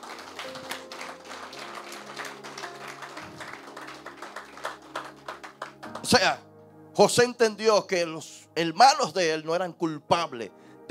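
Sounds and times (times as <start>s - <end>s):
audience applause: 0.0s - 6.1s
speech: 6.1s - 6.4s, 7.0s - 10.8s.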